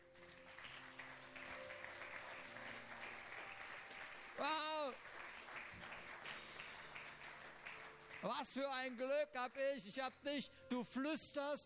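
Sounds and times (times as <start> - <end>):
audience applauding: 0.0 - 9.0
speech: 8.2 - 11.6.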